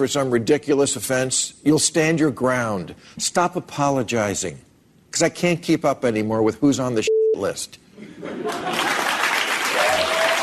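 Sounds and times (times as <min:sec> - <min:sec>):
speech: 0:00.0 - 0:08.9
laughter: 0:08.0 - 0:09.2
studio audience applause: 0:08.4 - 0:10.4.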